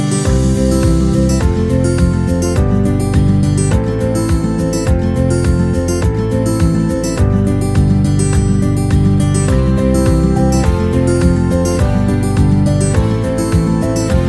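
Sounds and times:
folk music: 0.1 - 14.2.

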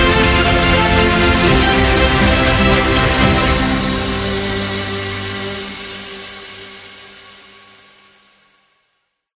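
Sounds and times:
award celebration music: 0.0 - 7.1.

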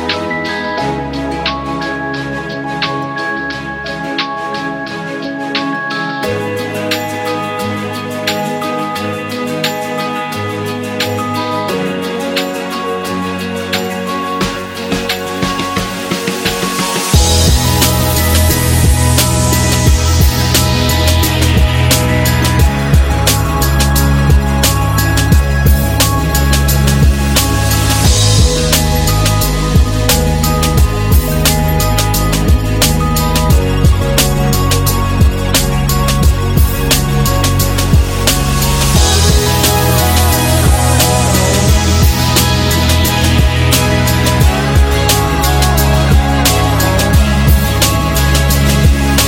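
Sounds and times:
lounge beat: 0.1 - 49.2.

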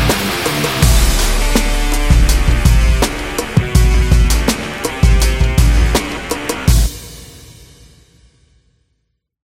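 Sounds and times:
heavy rock music: 0.0 - 7.5.

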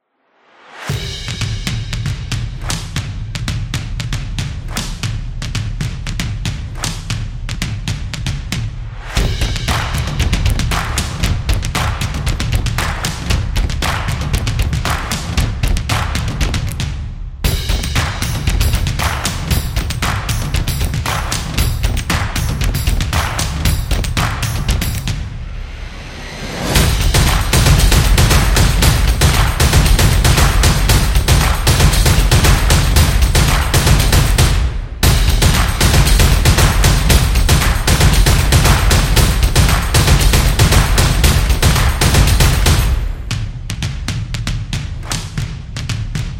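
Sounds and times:
sport drums beat: 0.7 - 25.4, 26.6 - 46.3.

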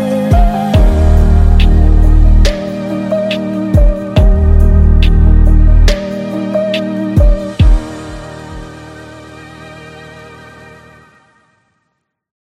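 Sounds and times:
soft beat: 0.3 - 8.8.

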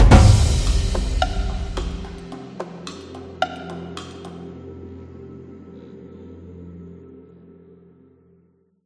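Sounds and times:
African music: 0.0 - 6.4.

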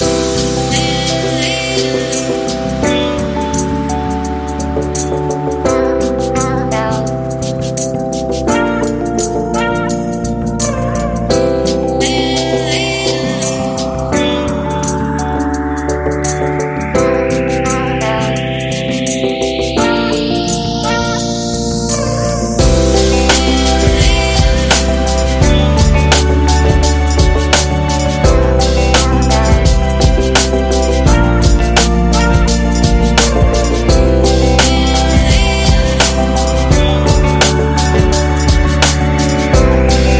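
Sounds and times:
hip hop music: 0.0 - 40.1.

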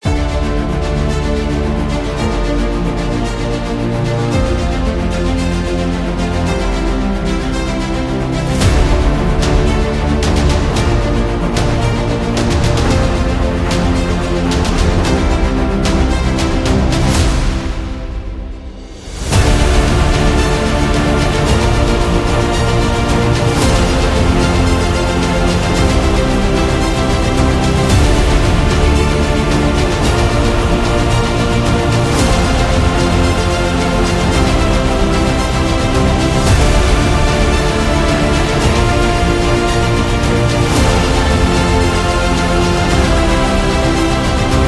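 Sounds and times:
epic trailer music: 0.0 - 44.6.

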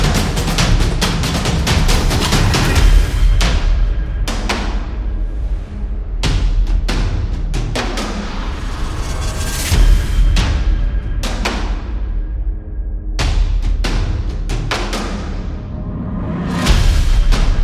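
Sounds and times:
energetic drums: 0.0 - 17.6.

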